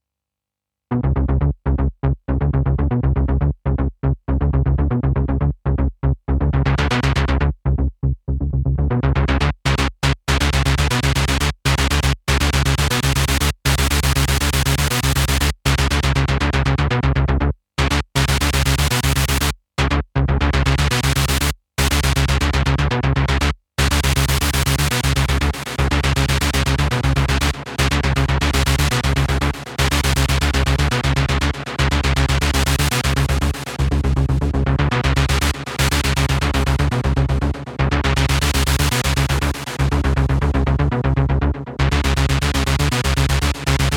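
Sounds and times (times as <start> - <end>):
noise bass synth lead SE02: 0.9 - 43.9.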